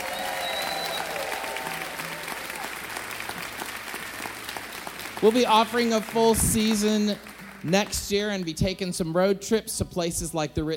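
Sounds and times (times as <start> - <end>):
audience applause: 0.0 - 8.5
speech: 5.2 - 10.7.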